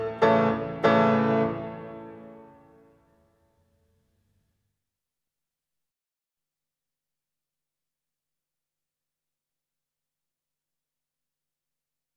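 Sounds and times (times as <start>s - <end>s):
piano sonata in A major allegretto: 0.0s - 3.0s.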